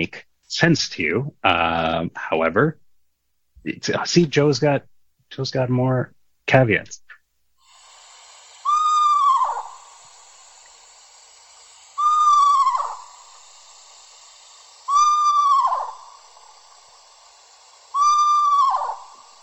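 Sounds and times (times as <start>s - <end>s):
speech: 0.0s - 2.8s, 3.6s - 7.0s
steady hiss: 0.0s - 19.4s
Eastern screech owl whinnying calls: 8.6s - 10.0s, 12.0s - 13.4s, 14.8s - 16.6s, 17.9s - 19.4s.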